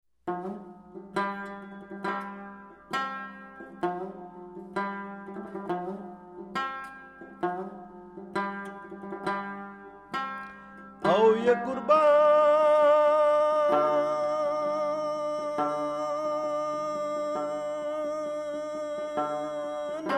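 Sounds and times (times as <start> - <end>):
lute playing: 0.3 - 20.1.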